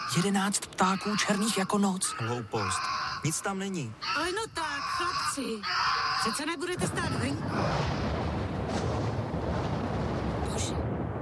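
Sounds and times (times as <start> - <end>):
speech: 0.2 - 8.0
thunder of a winter thunderstorm: 6.8 - 11.2.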